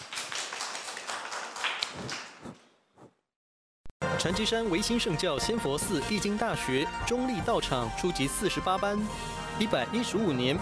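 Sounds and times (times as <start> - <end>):
audience applause: 0.0 - 2.3
speech: 4.2 - 10.6.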